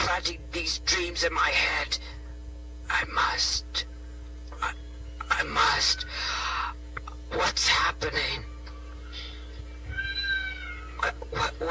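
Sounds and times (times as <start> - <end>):
low hum: 0.0 - 11.6
speech: 0.2 - 2.2, 2.9 - 3.9, 5.4 - 6.6, 7.3 - 8.5, 11.0 - 11.6
cat meowing: 9.0 - 11.2.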